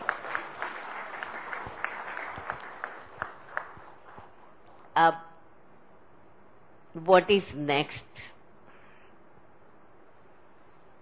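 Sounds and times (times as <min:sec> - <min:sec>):
audience clapping: 0:00.0 - 0:04.5
speech: 0:05.0 - 0:05.2, 0:06.9 - 0:08.3.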